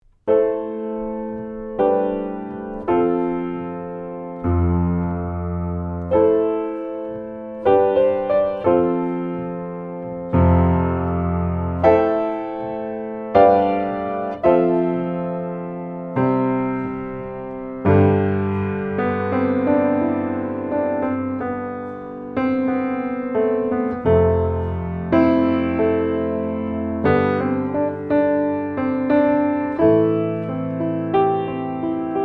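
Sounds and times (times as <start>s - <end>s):
piano: 0.0s - 32.2s.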